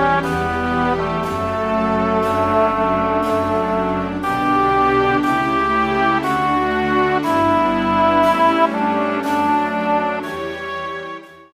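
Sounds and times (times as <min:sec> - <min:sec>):
low strings accompaniment in D major for vocal music: 0:00.0 - 0:11.5.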